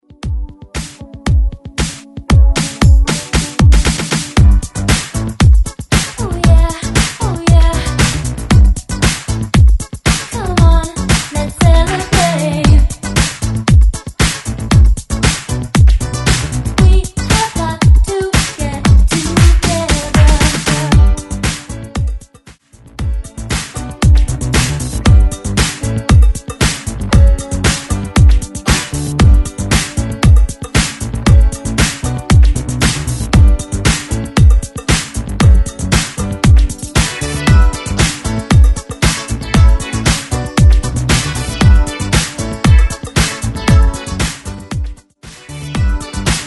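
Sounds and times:
80s drum loop: 0.2s - 22.3s, 23.0s - 45.0s, 45.8s - 46.4s.

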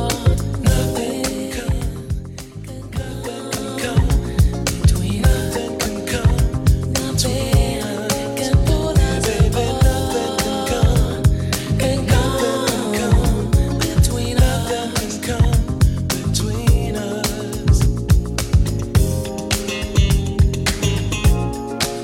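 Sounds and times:
eighties style music: 0.0s - 22.0s.

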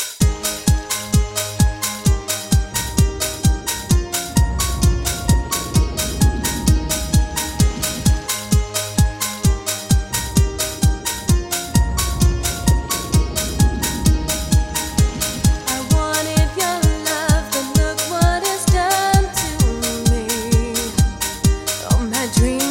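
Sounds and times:
clean intro outro music: 0.2s - 22.6s.

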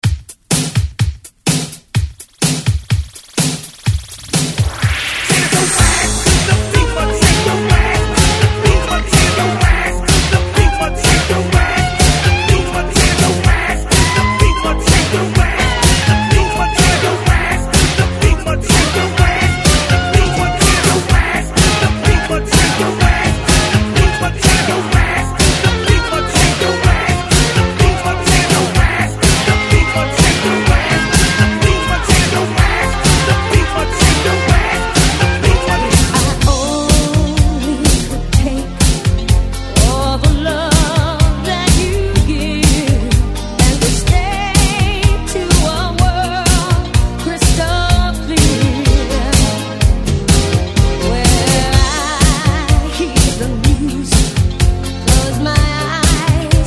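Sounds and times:
Redrum drum machine beat: 0.0s - 56.6s.

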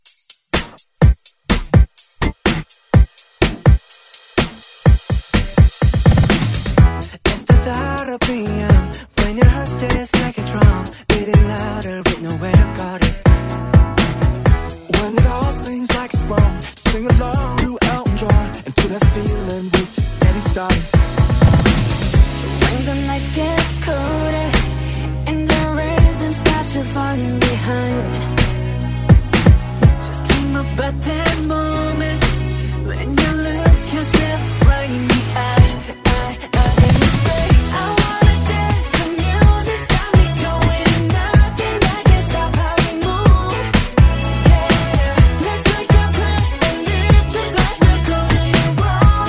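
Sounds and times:
Top 40 pop music: 0.6s - 49.2s.

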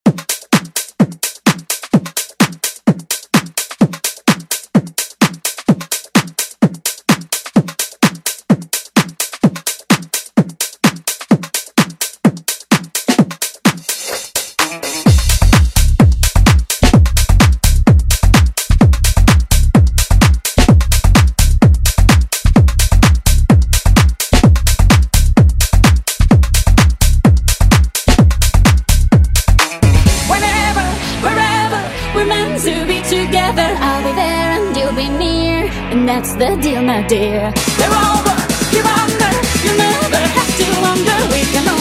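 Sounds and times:
house music edit: 0.0s - 41.7s.

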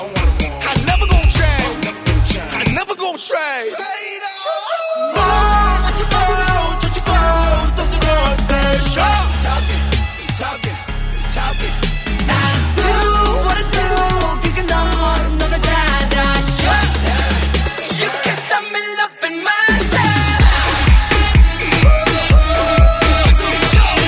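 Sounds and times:
K-pop music: 0.0s - 24.0s.

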